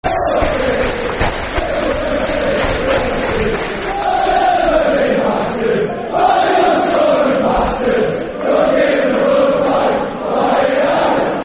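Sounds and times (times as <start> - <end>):
football crowd chanting: 0.0 - 11.4.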